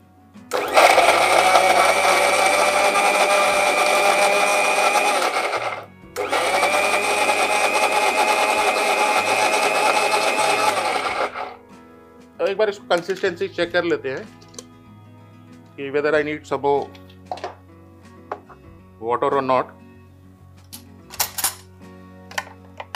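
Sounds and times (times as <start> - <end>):
mixer grinder grinding spice paste: 0.5 - 11.6
speech: 12.9 - 14.4, 15.8 - 17.0, 19.0 - 19.8.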